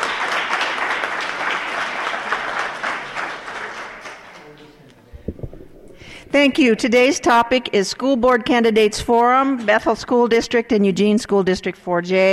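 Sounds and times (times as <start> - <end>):
crowd applauding: 0.0 - 4.8
speech: 6.3 - 12.3.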